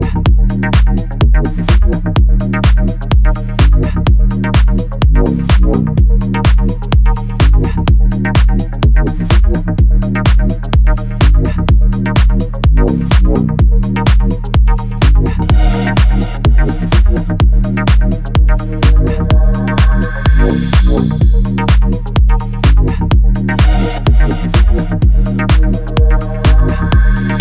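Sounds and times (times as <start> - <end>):
drop beats: 0.0 - 27.3.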